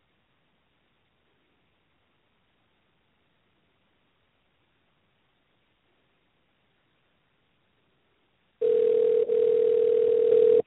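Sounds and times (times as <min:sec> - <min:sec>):
telephone dial tone while placing a call: 0:08.6 - 0:10.6.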